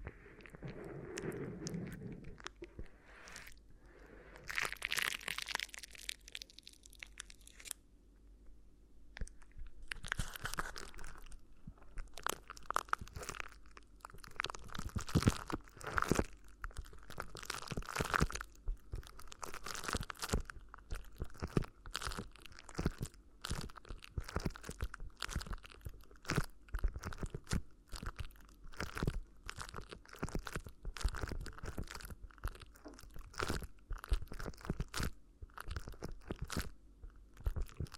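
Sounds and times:
low rubbing: 0.0s - 4.5s
crinkly ear massage crunches and rustles: 0.0s - 7.8s, 9.2s - 37.9s
faint steady hum: 0.0s - 37.9s.

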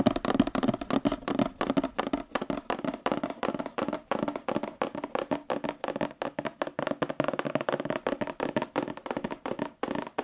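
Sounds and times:
fast aggressive tapping on cardboard: 0.0s - 10.2s.

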